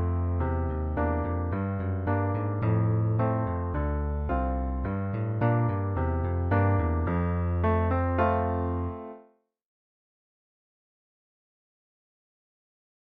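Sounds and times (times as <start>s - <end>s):
electric bass: 0.0s - 8.8s
piano: 0.0s - 9.4s.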